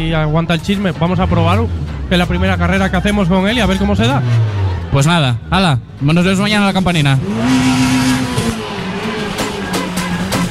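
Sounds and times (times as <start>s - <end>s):
speech: 0.0s - 7.7s
Citroën Saxo VTS rally car engine droning: 0.0s - 10.4s.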